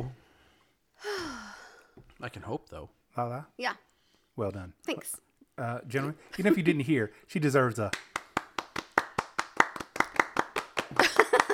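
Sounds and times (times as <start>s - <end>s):
speech: 2.2s - 8.2s
moist one-handed clapping: 7.8s - 11.5s.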